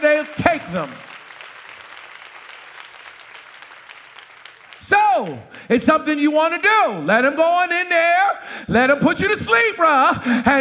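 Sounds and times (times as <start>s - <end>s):
audience clapping: 0.0s - 5.7s
speech: 0.7s - 1.1s, 5.2s - 10.5s.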